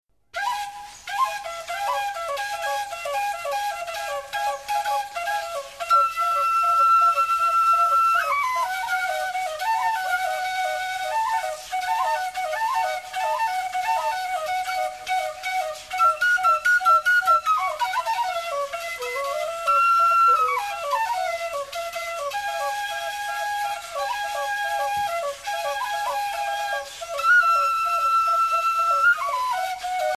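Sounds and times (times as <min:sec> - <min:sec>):
whistle tones: 0:00.3 - 0:30.1.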